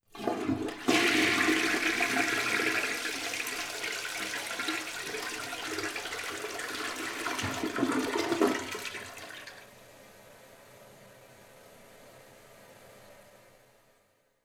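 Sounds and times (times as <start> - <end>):
toilet flushing: 0.0 - 9.8.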